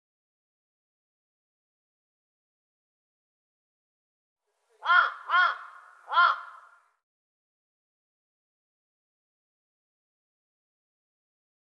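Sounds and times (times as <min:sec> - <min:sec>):
bird hoarse calls: 0:04.8 - 0:06.9.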